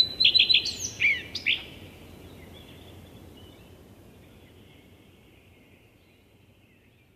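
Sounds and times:
Common Redstart song phrase: 0:00.0 - 0:07.1.

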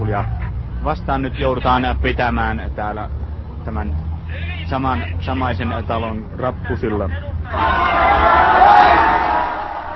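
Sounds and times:
speech: 0:00.1 - 0:08.8
crowd roaring and cheering, rushing through opened door: 0:07.4 - 0:09.9.

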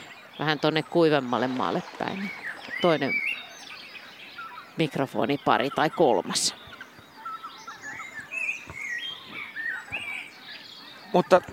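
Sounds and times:
spring dawn birdsong with many birds chirping and trilling: 0:00.0 - 0:11.5
speech: 0:00.4 - 0:03.3, 0:04.8 - 0:06.7, 0:11.1 - 0:11.5.

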